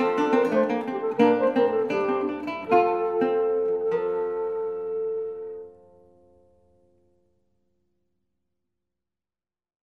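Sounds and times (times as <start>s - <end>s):
flute in a duet with lute: 0.0s - 6.3s
lute in a duet with flute: 0.0s - 7.2s.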